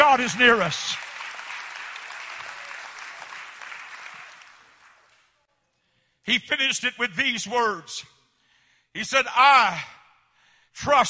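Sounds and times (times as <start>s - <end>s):
audience clapping: 0.0s - 5.4s
speech: 0.2s - 1.0s, 6.3s - 8.2s, 8.9s - 10.0s, 10.8s - 11.0s.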